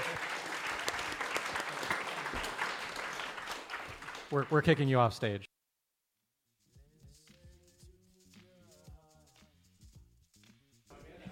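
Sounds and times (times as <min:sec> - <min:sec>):
audience applause: 0:00.0 - 0:05.1
speech: 0:04.3 - 0:05.5.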